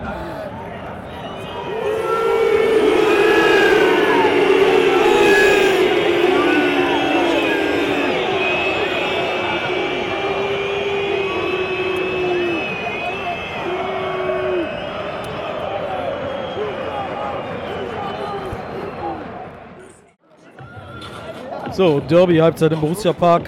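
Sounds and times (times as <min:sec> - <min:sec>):
stadium crowd whistling at halftime in Borussia Park: 0:00.8 - 0:19.5
speech: 0:21.8 - 0:23.4.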